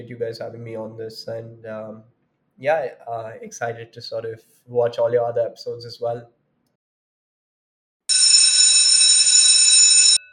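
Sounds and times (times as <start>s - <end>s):
speech: 0.0s - 6.4s
college bell ringing: 8.1s - 10.3s.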